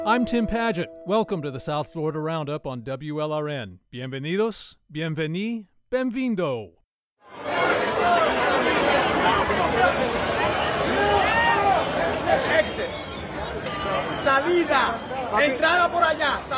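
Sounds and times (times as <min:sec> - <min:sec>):
speech: 0:00.1 - 0:06.8, 0:07.4 - 0:10.3, 0:14.3 - 0:16.5
chaotic crowd of fans shouting and chattering at Hard Rock Stadium in Miami Gardens: 0:07.2 - 0:16.5.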